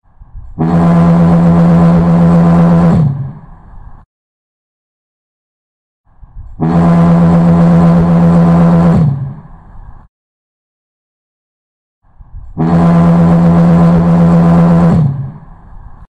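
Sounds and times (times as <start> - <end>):
Souter Lighthouse foghorn: 0.5 - 3.5, 6.5 - 9.5, 12.5 - 15.6.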